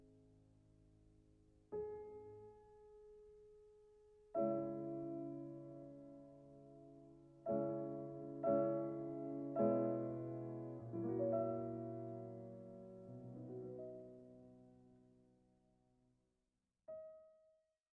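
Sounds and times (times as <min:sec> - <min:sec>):
piano concerto slow movement in C minor: 0:04.5 - 0:14.6.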